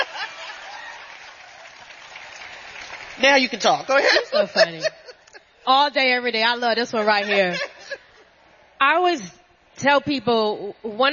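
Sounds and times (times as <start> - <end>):
laughter: 0.0 - 1.2, 3.9 - 5.6, 6.8 - 8.3
audience clapping: 0.0 - 4.0
speech: 3.2 - 5.0, 5.6 - 7.7, 8.8 - 11.1.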